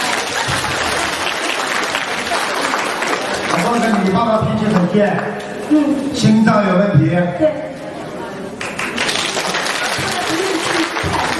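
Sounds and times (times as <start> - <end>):
crowd clapping: 0.0 - 5.3, 8.6 - 11.3
speech: 4.1 - 7.7.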